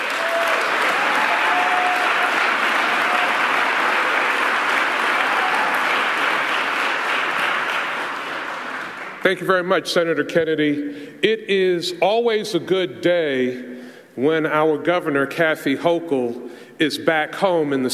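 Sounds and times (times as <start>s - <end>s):
audience applauding at a public announcement event: 0.0s - 9.3s
speech: 9.2s - 17.9s.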